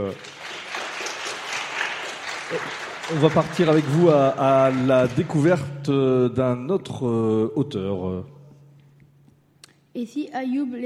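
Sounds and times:
speech: 0:00.0 - 0:00.5, 0:02.5 - 0:08.4, 0:10.0 - 0:10.8
applause: 0:00.0 - 0:05.7.

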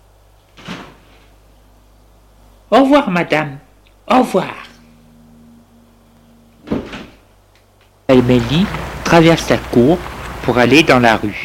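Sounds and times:
steady low hum: 0:01.2 - 0:10.8
speech: 0:02.7 - 0:04.6, 0:08.2 - 0:11.4
door opening with a scraping clunk: 0:06.6 - 0:07.2.

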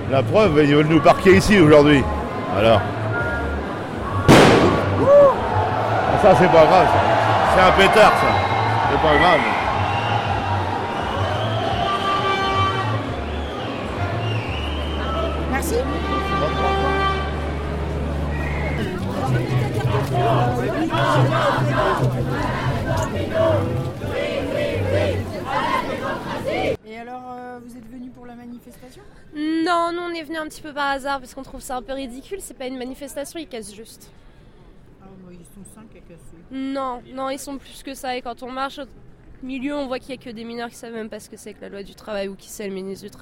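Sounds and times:
protest crowd chanting and shouting: 0:00.0 - 0:26.8
speech: 0:00.1 - 0:03.0, 0:06.2 - 0:09.6, 0:20.3 - 0:24.0, 0:28.6 - 0:34.3, 0:35.6 - 0:43.2
horn blasts: 0:10.4 - 0:18.6.

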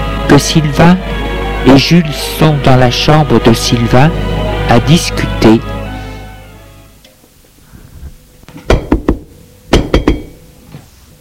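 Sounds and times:
speech: 0:00.3 - 0:05.8
knocking on a door: 0:08.7 - 0:10.4.

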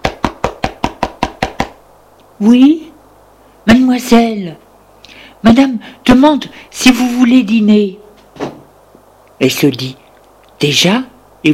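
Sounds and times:
knocking on a door: 0:00.0 - 0:01.8
speech: 0:02.4 - 0:02.9, 0:03.9 - 0:04.6, 0:05.4 - 0:08.0, 0:09.4 - 0:10.0, 0:10.6 - 0:11.5.

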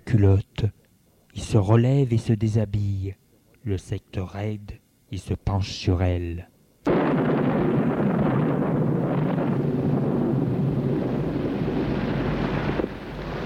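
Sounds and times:
speech: 0:00.1 - 0:00.8, 0:01.4 - 0:06.5
thunderstorm thunder: 0:06.9 - 0:13.4.

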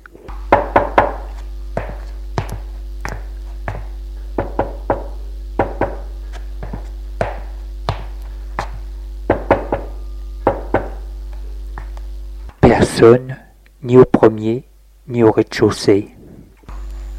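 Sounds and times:
knocking on wooden doors: 0:00.5 - 0:01.2, 0:03.7 - 0:06.0, 0:09.3 - 0:11.0
speech: 0:13.0 - 0:16.2.

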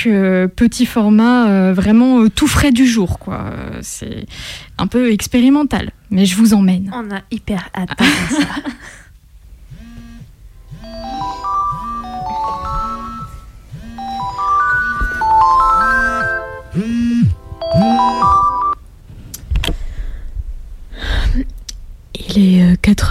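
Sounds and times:
speech: 0:00.0 - 0:09.0, 0:22.4 - 0:23.0
alarm clock going off: 0:09.8 - 0:18.8.

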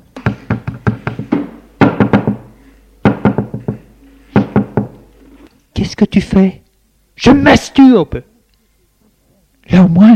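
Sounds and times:
knocking on a toilet door: 0:00.2 - 0:05.0
speech: 0:05.9 - 0:06.6, 0:07.2 - 0:08.3, 0:09.7 - 0:10.1.

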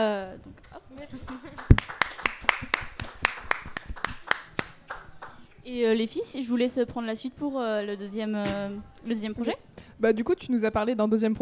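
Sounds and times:
speech: 0:00.0 - 0:02.2, 0:05.6 - 0:11.4
audience applause: 0:01.2 - 0:05.4.

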